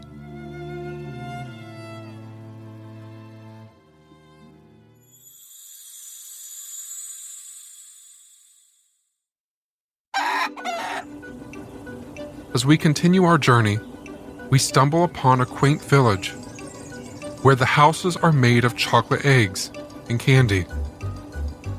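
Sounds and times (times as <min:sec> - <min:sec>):
rooster crowing: 0:10.1 - 0:11.2
chicken clucking and squawking: 0:10.2 - 0:11.2
speech: 0:12.6 - 0:13.9, 0:14.5 - 0:16.4, 0:17.4 - 0:20.8.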